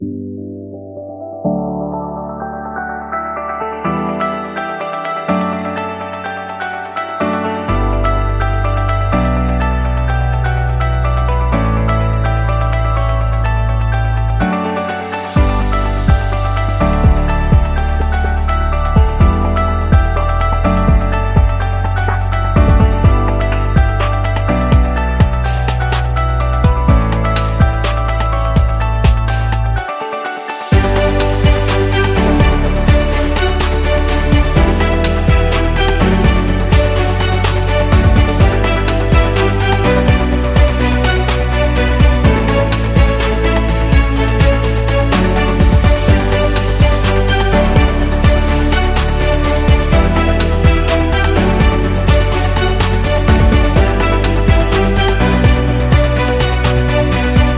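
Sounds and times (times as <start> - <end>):
corporate promo music: 0.1 - 57.5.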